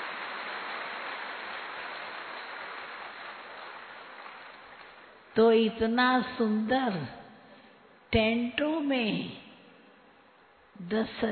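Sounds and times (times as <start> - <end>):
audience clapping: 0.0 - 5.3
speech: 5.4 - 7.2, 8.1 - 9.4, 10.8 - 11.3.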